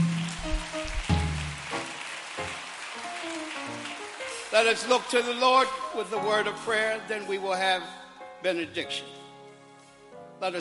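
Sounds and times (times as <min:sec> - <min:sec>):
audience clapping in praise: 0:00.0 - 0:05.8
speech: 0:04.5 - 0:09.2, 0:10.4 - 0:10.6.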